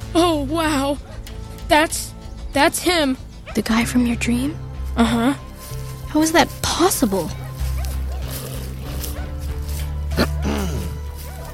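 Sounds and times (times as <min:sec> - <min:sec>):
speech: 0:00.1 - 0:01.1, 0:01.7 - 0:05.4, 0:06.1 - 0:07.4
dog barking and yipping: 0:07.3 - 0:11.5.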